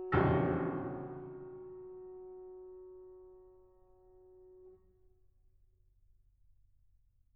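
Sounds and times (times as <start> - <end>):
drum playing: 0.1 - 1.4.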